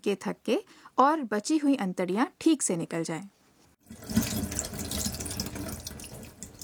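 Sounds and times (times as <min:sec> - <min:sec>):
speech: 0:00.0 - 0:04.3
fish being washed under running tap water: 0:03.8 - 0:06.6
running tap water splashing into a sink: 0:03.8 - 0:06.6.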